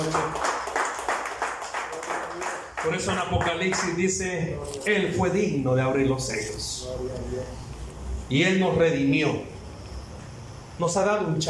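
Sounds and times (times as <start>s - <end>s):
speech: 0.0s - 0.5s, 2.8s - 7.7s, 8.3s - 9.5s, 10.8s - 11.4s
audience applause: 0.0s - 4.0s.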